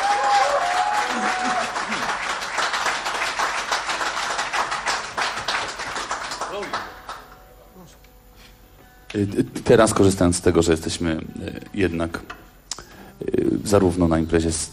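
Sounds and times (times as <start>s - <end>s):
crowd at a blues event applauding: 0.0s - 7.4s
speech: 9.2s - 12.4s, 13.6s - 14.7s.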